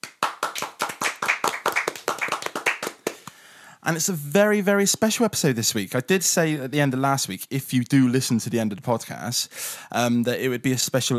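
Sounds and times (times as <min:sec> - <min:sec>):
single hand clap: 0:00.0 - 0:03.4
speech: 0:03.9 - 0:11.1.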